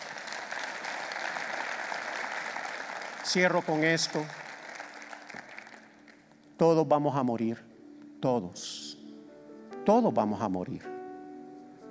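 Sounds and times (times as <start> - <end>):
audience applause: 0.0 - 6.2
speech: 3.2 - 4.4, 6.6 - 8.9, 9.8 - 11.0.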